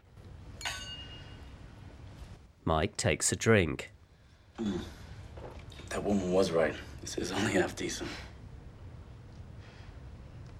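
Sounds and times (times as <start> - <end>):
glasses clinking together in a toast: 0.6 - 1.6
speech: 2.7 - 4.0, 4.6 - 5.0, 5.9 - 8.3.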